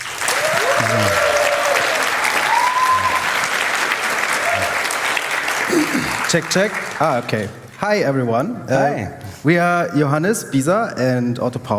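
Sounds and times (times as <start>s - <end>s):
crowd applause: 0.0s - 7.8s
speech: 6.3s - 11.7s.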